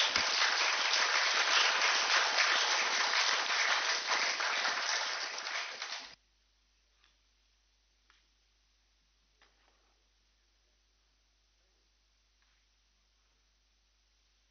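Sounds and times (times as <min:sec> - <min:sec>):
crowd applause: 0:00.0 - 0:06.2.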